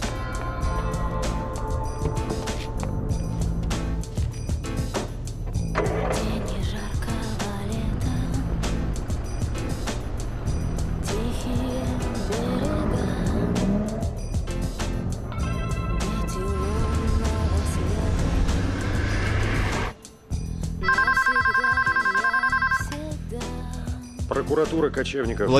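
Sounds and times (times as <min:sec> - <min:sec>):
music: 0:00.0 - 0:25.5
car engine running: 0:05.6 - 0:13.9
telephone ringing with a high electronic trill: 0:20.8 - 0:23.0
speech: 0:24.6 - 0:25.5.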